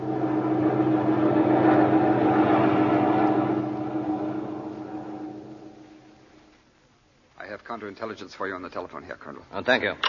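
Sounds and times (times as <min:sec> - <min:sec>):
aircraft engine drone in flight: 0:00.0 - 0:06.6
speech: 0:07.7 - 0:10.0.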